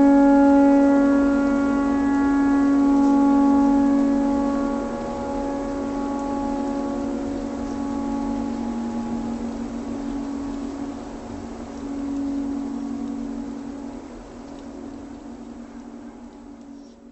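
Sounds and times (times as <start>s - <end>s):
tornado siren: 0.0s - 17.0s.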